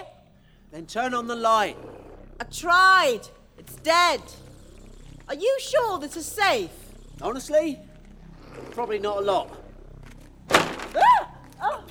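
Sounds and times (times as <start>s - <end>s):
speech: 0.7s - 4.5s, 5.3s - 7.9s, 8.6s - 9.6s
cupboard door falling off: 10.5s - 11.0s.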